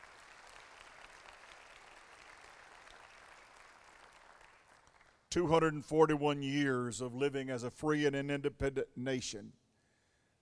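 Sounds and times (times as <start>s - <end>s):
audience hand clapping: 0.0s - 5.3s
speech: 5.4s - 9.6s.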